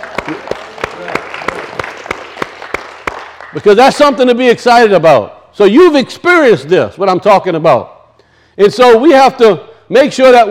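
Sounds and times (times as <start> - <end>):
church congregation hand clapping after a sermon: 0.0 - 4.1
speech: 3.6 - 7.9, 8.6 - 10.4.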